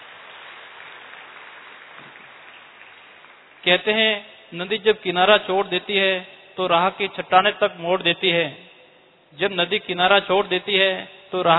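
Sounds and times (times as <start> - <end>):
audience applause: 0.0 - 3.7
speech: 3.6 - 8.6, 9.3 - 11.5.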